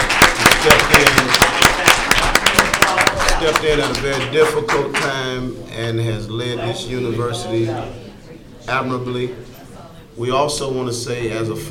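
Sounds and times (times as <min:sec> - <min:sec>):
audience applause: 0:00.0 - 0:05.1
speech: 0:03.4 - 0:08.0, 0:08.7 - 0:09.6, 0:10.2 - 0:11.6.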